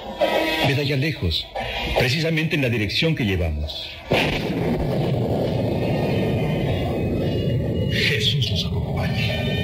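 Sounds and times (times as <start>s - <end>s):
speech: 0.6s - 5.2s
thunder from an approaching storm: 4.1s - 9.6s.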